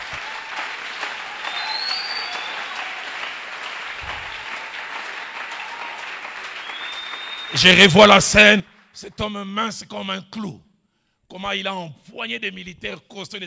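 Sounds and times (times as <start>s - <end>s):
audience applause: 0.0s - 8.3s
speech: 7.5s - 10.7s, 11.3s - 13.4s.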